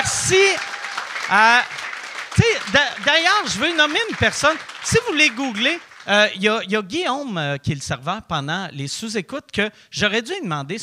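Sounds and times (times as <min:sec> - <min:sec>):
voices cheering and whooping: 0:00.0 - 0:05.8
crowd applauding: 0:00.0 - 0:06.5
speech: 0:01.3 - 0:01.8, 0:02.4 - 0:10.8.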